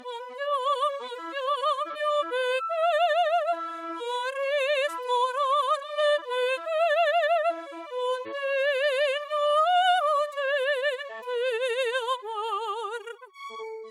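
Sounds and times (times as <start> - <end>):
woman singing opera: 0.0 - 13.8.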